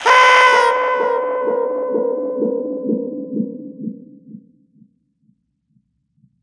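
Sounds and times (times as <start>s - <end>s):
toy sound with echo: 0.0s - 1.6s.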